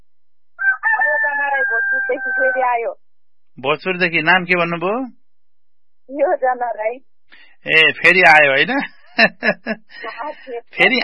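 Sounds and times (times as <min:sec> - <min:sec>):
rooster crowing in the early morning: 0:00.6 - 0:02.6
speech: 0:01.9 - 0:03.0, 0:03.6 - 0:05.2, 0:06.1 - 0:11.0
laughter: 0:07.7 - 0:11.0.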